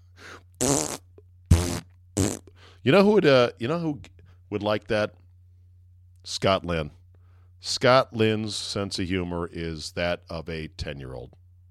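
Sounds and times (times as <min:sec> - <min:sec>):
fart into a can: 0:00.6 - 0:02.5
speech: 0:02.8 - 0:05.2, 0:06.2 - 0:07.0, 0:07.6 - 0:11.4.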